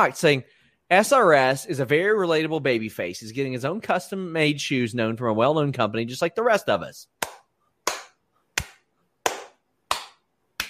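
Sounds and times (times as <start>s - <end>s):
speech: 0.0s - 7.3s
hand clapping: 7.2s - 10.6s.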